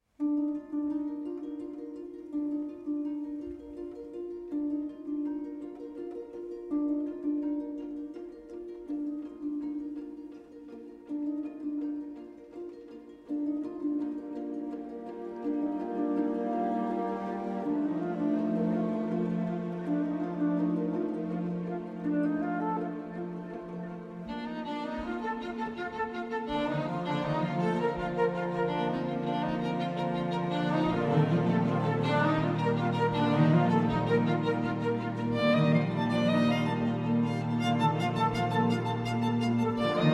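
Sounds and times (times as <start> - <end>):
ensemble: 0.0 - 40.1
solo violin: 14.4 - 40.1.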